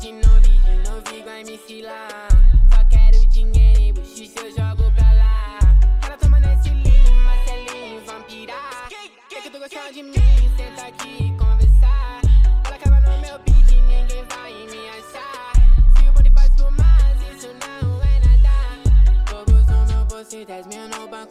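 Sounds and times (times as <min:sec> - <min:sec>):
deep bass: 0:00.0 - 0:01.0, 0:02.3 - 0:04.0, 0:04.6 - 0:07.7, 0:10.2 - 0:14.3, 0:15.6 - 0:20.2.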